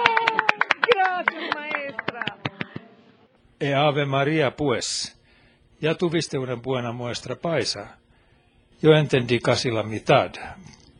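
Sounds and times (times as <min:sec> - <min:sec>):
recorded applause: 0:00.0 - 0:02.8
speech: 0:03.6 - 0:05.2, 0:05.8 - 0:08.0, 0:08.8 - 0:10.8.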